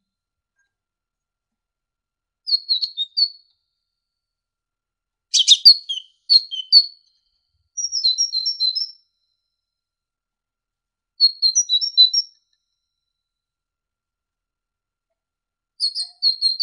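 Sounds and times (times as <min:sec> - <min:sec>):
great tit singing: 0:02.5 - 0:03.4, 0:05.3 - 0:07.0, 0:07.8 - 0:09.0, 0:11.2 - 0:12.4, 0:15.8 - 0:16.6.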